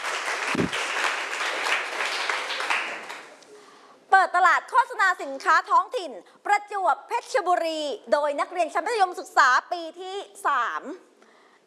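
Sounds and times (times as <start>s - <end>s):
applause from students: 0.0s - 3.4s
speech: 0.6s - 0.9s, 4.5s - 11.1s.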